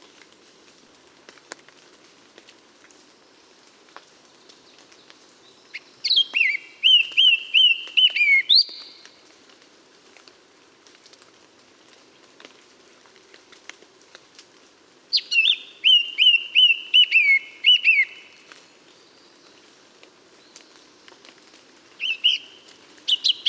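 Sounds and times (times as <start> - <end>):
Eurasian blackcap song: 5.8 - 8.9, 15.1 - 18.4, 22.0 - 23.4.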